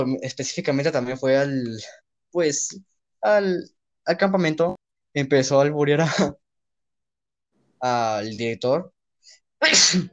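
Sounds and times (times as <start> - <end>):
speech: 0.0 - 6.4, 7.8 - 10.1
sneeze: 9.6 - 10.1.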